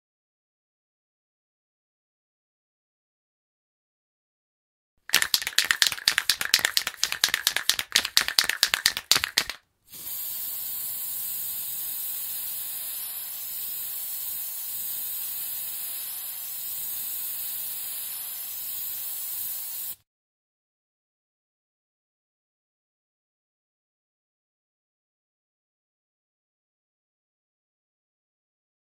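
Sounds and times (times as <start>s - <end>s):
spray: 5.1s - 20.0s.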